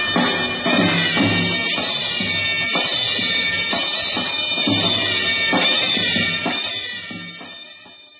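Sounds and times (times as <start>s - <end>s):
Bulgarian gajda bagpipe instrumental: 0.0s - 8.1s.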